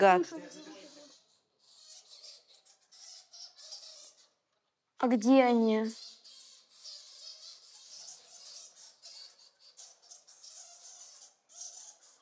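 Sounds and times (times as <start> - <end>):
person asking a short spoken question: 0.0 - 0.3, 5.0 - 6.0
speech: 0.0 - 0.7, 5.0 - 6.0
bats squeaking in a cave gorge: 0.0 - 4.3, 5.0 - 12.2.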